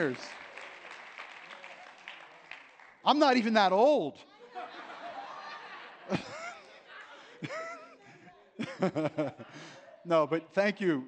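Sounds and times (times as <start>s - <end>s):
speech: 0.0s - 0.4s, 3.0s - 4.3s, 6.1s - 6.3s, 8.8s - 11.0s
audience applause: 0.0s - 3.5s
laughter: 4.3s - 10.5s.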